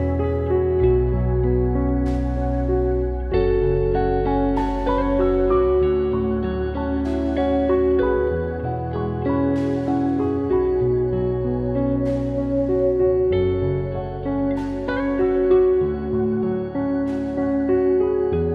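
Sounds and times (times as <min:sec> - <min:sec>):
background music: 0:00.0 - 0:18.5.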